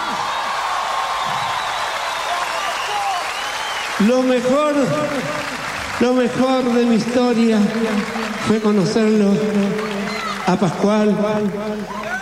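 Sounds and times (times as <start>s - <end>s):
audience applause: 0.0s - 12.2s
speech: 4.0s - 12.0s.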